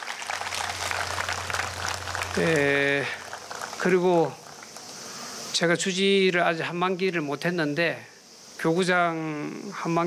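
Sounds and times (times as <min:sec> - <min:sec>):
crowd clapping: 0:00.0 - 0:05.0
sustained tonal sound: 0:00.3 - 0:03.8
speech: 0:02.4 - 0:03.2, 0:03.8 - 0:04.4, 0:05.6 - 0:10.0.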